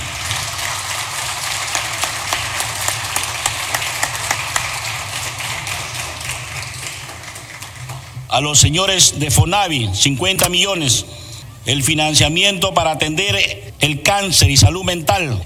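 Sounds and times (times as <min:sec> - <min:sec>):
audience applause: 0:00.0 - 0:08.3
speech: 0:08.4 - 0:15.4.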